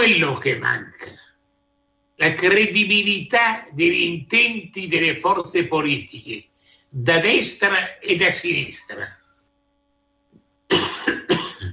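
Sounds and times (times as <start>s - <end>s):
speech: 0.0s - 1.2s, 2.2s - 9.2s
faint throat sound: 10.7s - 11.7s
man coughing harshly: 10.7s - 11.7s.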